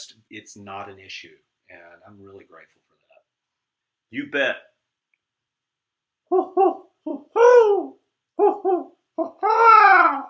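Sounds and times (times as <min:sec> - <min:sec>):
speech: 0:00.0 - 0:03.0, 0:04.1 - 0:04.7, 0:06.3 - 0:10.2
owl hooting: 0:06.3 - 0:10.2.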